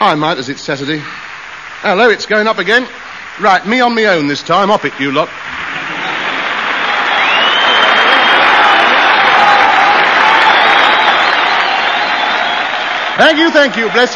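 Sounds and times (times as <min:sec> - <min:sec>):
speech: 0:00.0 - 0:05.6, 0:13.2 - 0:14.1
audience applause and cheering: 0:05.3 - 0:14.1.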